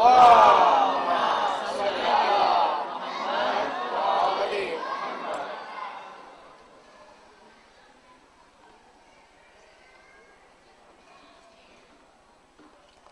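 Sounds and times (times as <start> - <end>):
conference audience chanting a salawat in unison: 0.0 - 6.5.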